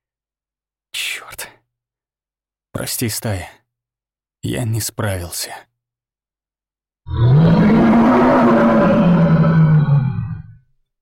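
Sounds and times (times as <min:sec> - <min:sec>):
speech: 0:02.8 - 0:03.6, 0:04.4 - 0:05.7
deafening primal beast roar: 0:07.1 - 0:10.6.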